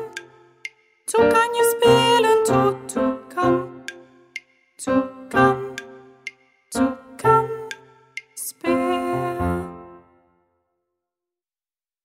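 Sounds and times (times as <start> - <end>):
song: 1.1 - 10.3.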